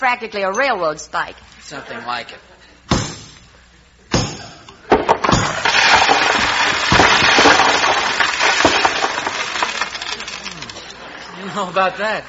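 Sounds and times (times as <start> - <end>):
speech: 0.0 - 2.5, 11.6 - 12.2
plaster crunching and crumbling with debris: 4.9 - 10.9.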